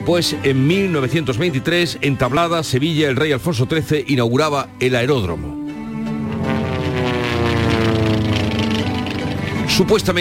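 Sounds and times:
speech: 0.0s - 5.6s, 9.8s - 10.1s
propeller-driven airplane engine droning: 5.7s - 10.1s.

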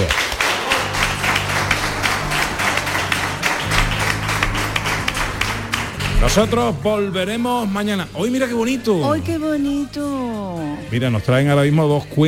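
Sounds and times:
audience applause: 0.0s - 6.8s
speech: 6.3s - 12.2s.

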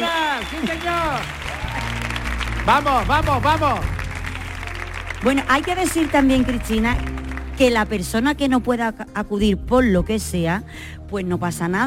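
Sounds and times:
huge ovation: 0.0s - 7.6s
speech: 2.6s - 4.0s, 5.2s - 11.8s.

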